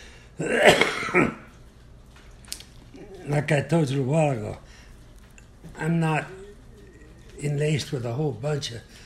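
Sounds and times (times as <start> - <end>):
speech: 0.4 - 1.4, 3.5 - 4.7, 5.8 - 6.4, 7.4 - 9.0
cough: 0.4 - 1.5.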